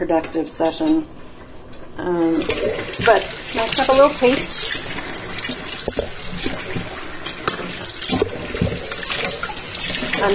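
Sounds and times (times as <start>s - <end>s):
speech: 0.0s - 1.2s, 2.0s - 5.0s
running tap water: 2.1s - 10.3s.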